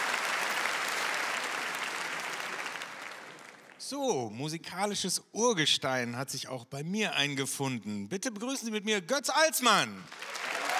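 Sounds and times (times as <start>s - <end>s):
audience applause: 0.0s - 3.8s, 10.1s - 10.7s
speech: 3.8s - 10.3s.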